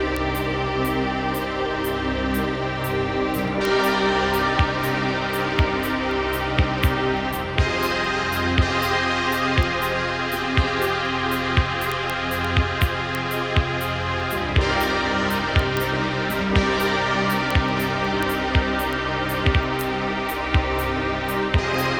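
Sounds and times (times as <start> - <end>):
music with errors: 0.0 - 21.9.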